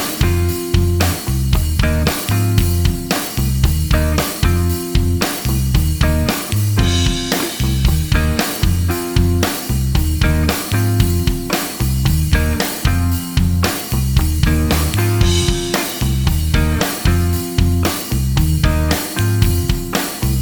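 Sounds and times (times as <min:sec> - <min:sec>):
slide guitar backing: 0:00.0 - 0:03.1, 0:03.8 - 0:19.8.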